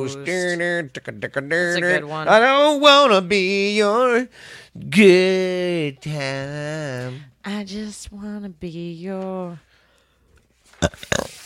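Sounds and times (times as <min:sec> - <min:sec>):
speech: 0:00.0 - 0:09.7, 0:10.8 - 0:11.4
loud guttural burp: 0:10.8 - 0:11.4.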